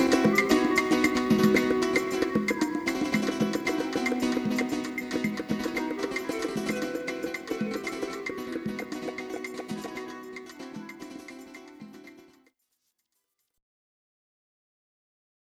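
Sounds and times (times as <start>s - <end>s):
flamenco rumba music: 0.0s - 12.4s.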